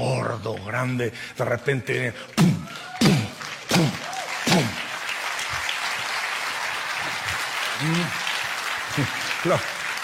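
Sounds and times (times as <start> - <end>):
speech: 0.3 - 3.9, 9.0 - 9.8
audience applause: 2.4 - 10.0.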